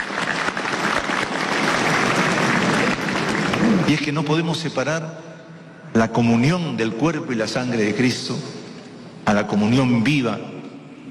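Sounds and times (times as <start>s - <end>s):
audience applauding: 0.0s - 4.1s
speech: 3.9s - 5.3s, 6.0s - 8.6s, 9.3s - 10.5s.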